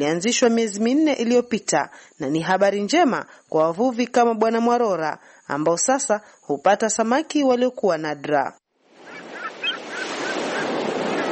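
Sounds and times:
speech: 0.0s - 8.6s
waves breaking on a sea beach: 8.9s - 11.3s.

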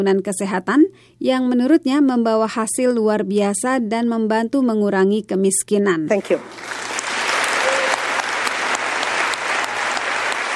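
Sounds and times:
speech: 0.0s - 6.9s
audience applause after a speech: 6.3s - 10.5s.

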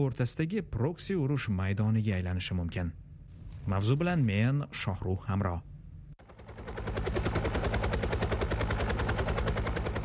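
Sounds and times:
speech: 0.0s - 3.0s, 3.6s - 5.7s
Rostvertol-built Russian helicopters rotor chop, being delivered to Venezuela: 6.2s - 10.0s.

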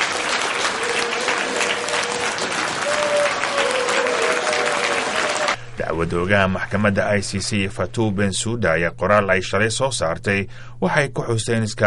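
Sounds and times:
conference attendees applauding a speech by the International Criminal Court prosecutor: 0.0s - 5.6s
speech: 5.8s - 11.8s.

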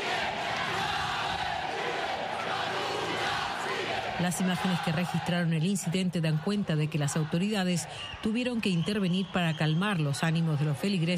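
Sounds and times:
crowd shouting insults in church: 0.0s - 8.7s
speech: 4.2s - 11.1s.

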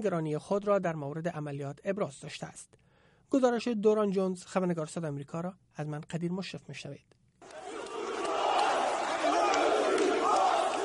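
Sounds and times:
speech: 0.0s - 7.6s
large crowd shouting protest slogans in unison: 7.4s - 10.8s.

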